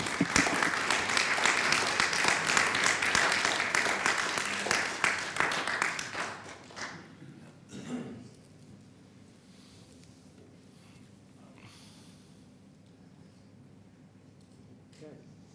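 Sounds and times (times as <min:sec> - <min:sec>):
audience applause: 0:00.0 - 0:07.2.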